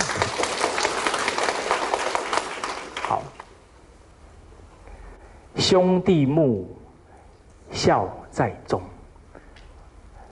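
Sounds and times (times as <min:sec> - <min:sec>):
audience applause: 0:00.0 - 0:03.4
speech: 0:05.6 - 0:06.8, 0:07.8 - 0:08.9.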